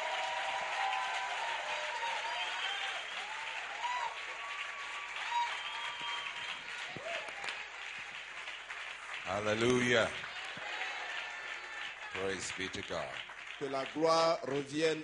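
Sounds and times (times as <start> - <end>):
people cheering and whooping: 0.0 - 8.2, 9.9 - 12.4
audience applause: 0.0 - 15.0
speech: 9.3 - 10.2, 12.2 - 15.0.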